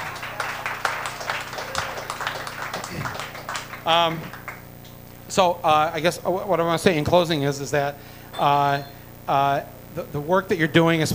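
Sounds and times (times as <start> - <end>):
crowd applause: 0.0 - 4.7
speech: 3.9 - 4.4, 5.3 - 11.1.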